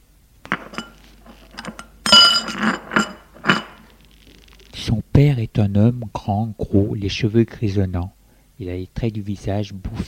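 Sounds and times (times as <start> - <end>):
dishes and cutlery clinking at a breakfast table: 0.5 - 4.0
speech: 5.2 - 10.0.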